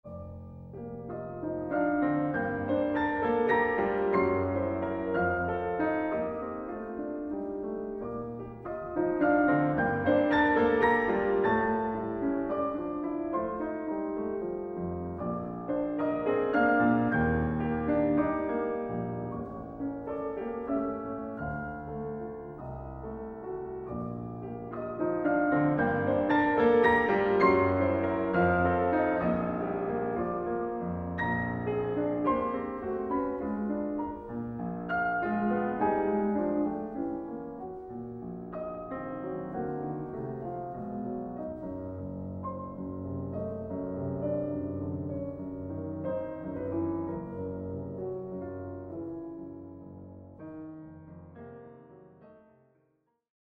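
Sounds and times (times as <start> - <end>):
variations in B-flat minor: 0.1 - 52.5.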